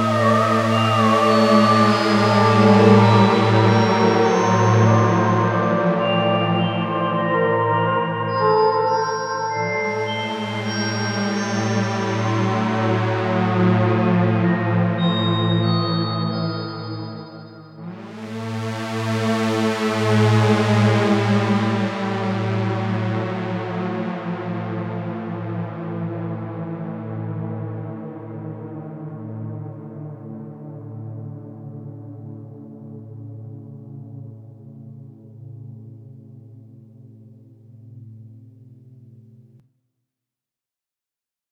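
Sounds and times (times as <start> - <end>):
synthesizer drone choir bell: 0.0 - 25.7.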